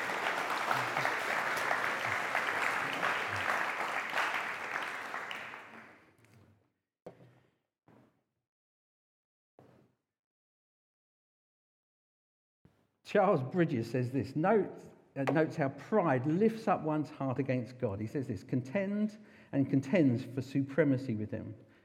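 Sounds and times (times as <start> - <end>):
audience clapping: 0.0 - 6.0
speech: 13.1 - 21.7.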